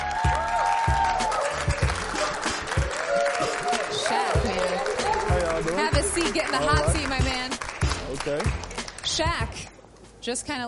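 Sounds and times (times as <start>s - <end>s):
high whoops: 0.0s - 5.4s
group of students clapping: 0.0s - 9.2s
speech: 6.2s - 7.5s, 8.2s - 10.6s.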